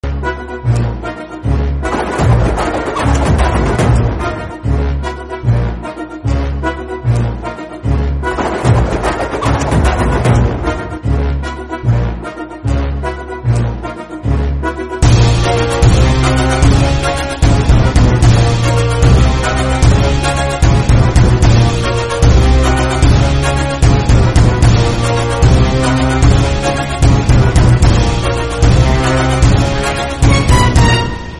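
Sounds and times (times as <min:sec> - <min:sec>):
background music theme: 0:00.0 - 0:31.3.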